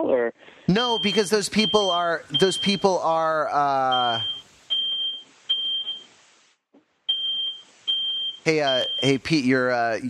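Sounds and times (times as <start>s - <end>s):
speech: 0.0s - 4.4s, 8.4s - 10.0s
smoke detector beeping in a home: 0.8s - 6.1s, 7.1s - 9.2s.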